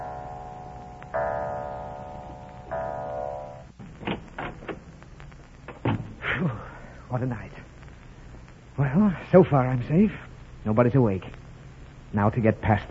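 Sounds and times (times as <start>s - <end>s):
clock chiming: 0.0s - 3.8s
speech: 7.1s - 7.6s, 8.8s - 11.4s, 12.1s - 12.9s.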